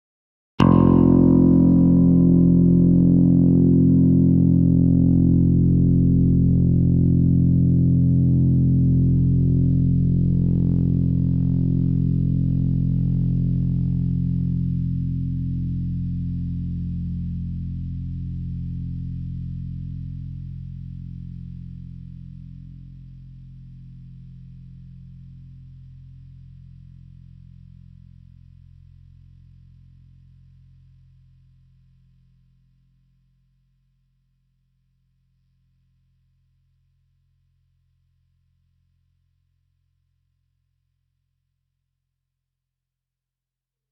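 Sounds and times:
F bass note on a guitar string: 0.6s - 19.8s.

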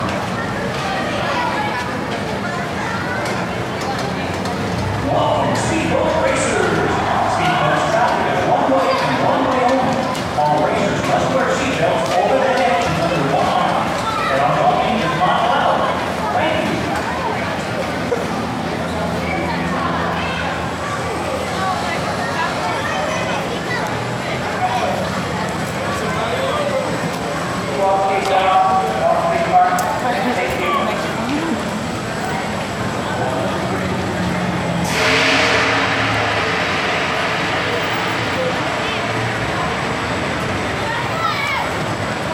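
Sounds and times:
bumper cars: 0.0s - 42.3s.

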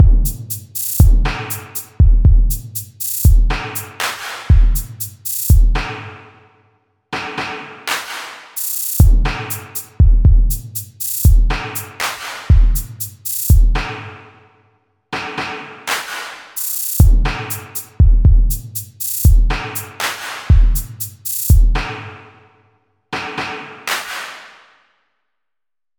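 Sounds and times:
drum pattern: 0.0s - 6.1s, 7.2s - 14.1s, 15.2s - 22.1s.

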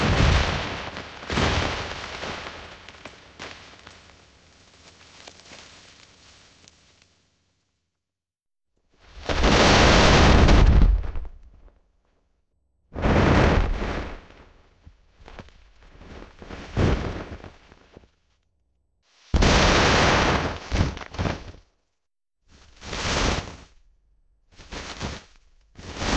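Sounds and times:
snow collapsing and falling: 0.0s - 7.1s, 9.0s - 11.6s, 13.0s - 18.0s, 19.2s - 21.6s, 22.5s - 23.9s, 24.5s - 26.1s.

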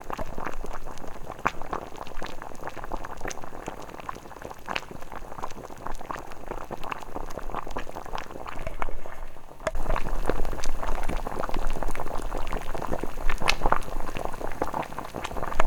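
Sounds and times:
water boiling: 0.0s - 15.6s.

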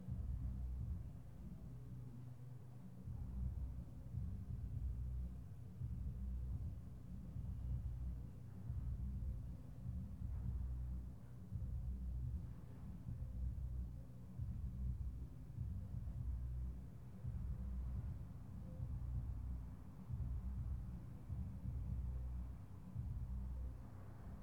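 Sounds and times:
muffled music with bass: 0.0s - 24.4s.

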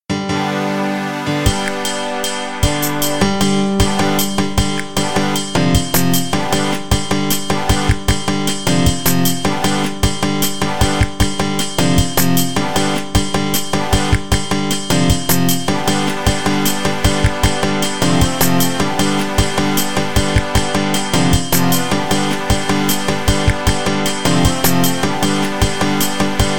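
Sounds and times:
winner music: 0.1s - 26.5s.

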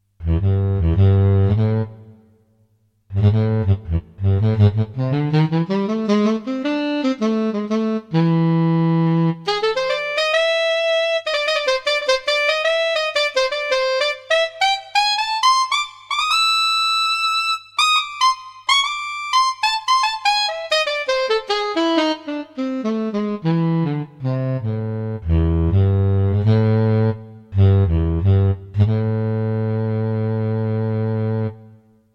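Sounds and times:
saxophone: 0.2s - 2.3s, 3.1s - 32.0s.

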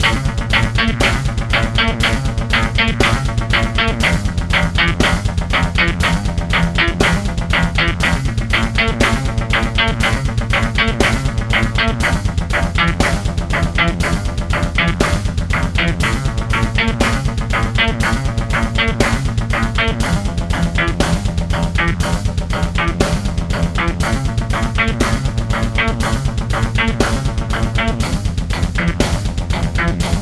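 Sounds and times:
hard grunge loop: 0.0s - 30.1s.

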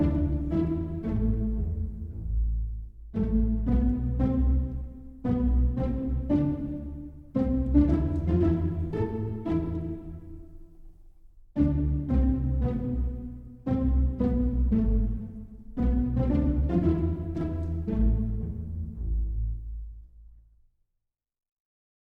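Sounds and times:
sneaky burglar music arranged for pizzicato strings: 0.0s - 20.3s.

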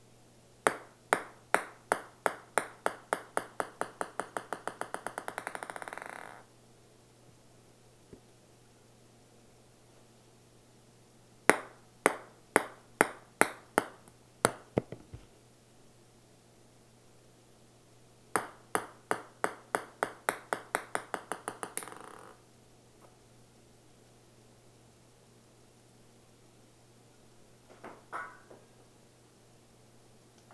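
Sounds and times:
ping pong ball bouncing: 0.7s - 6.4s, 11.5s - 15.2s, 18.4s - 22.4s.

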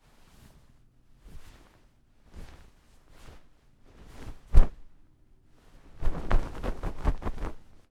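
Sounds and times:
comforter cloth pass: 1.3s - 4.9s, 5.7s - 7.8s.

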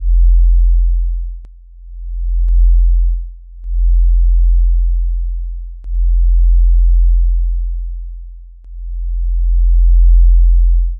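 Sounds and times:
low bass throb: 0.0s - 10.9s.

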